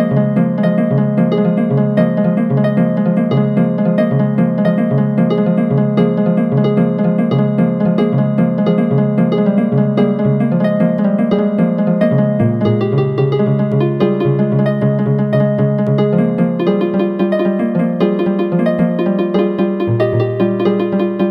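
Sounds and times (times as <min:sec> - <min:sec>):
cellular automaton harp: 0:00.0 - 0:21.2.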